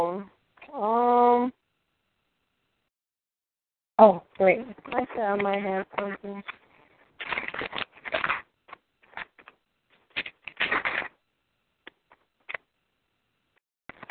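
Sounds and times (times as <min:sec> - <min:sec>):
speech: 0:04.0 - 0:06.6
folders and papers being handled, crackling and rustling: 0:04.7 - 0:11.2.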